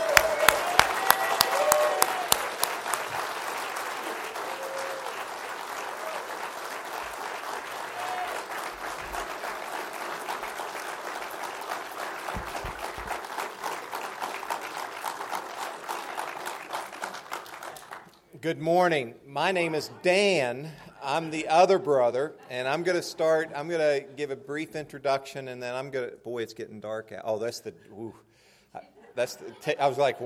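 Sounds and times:
church congregation at Hiram First Baptist Church applauding to welcome a guest preacher: 0.0s - 18.3s
speech: 18.4s - 30.2s.

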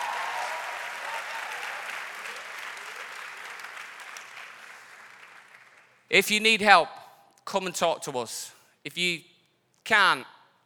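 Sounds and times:
applause: 0.0s - 6.1s
speech: 6.1s - 10.3s.

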